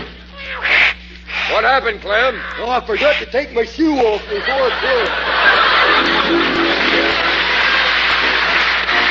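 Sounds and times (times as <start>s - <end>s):
cat yowling on a fence at night: 0.3s - 1.0s, 2.2s - 2.7s
speech: 1.6s - 5.3s, 6.0s - 6.6s
laughter: 3.8s - 9.0s.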